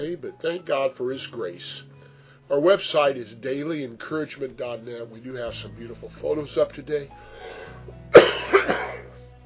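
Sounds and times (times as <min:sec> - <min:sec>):
speech: 0:00.0 - 0:01.9, 0:02.5 - 0:09.0
unwell speaker coughing: 0:08.2 - 0:09.1.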